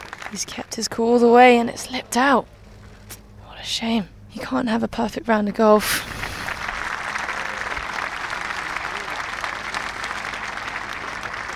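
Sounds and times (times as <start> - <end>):
golf gallery applause: 0.0 - 0.4, 6.1 - 11.5
speech: 0.3 - 2.6, 3.6 - 6.1.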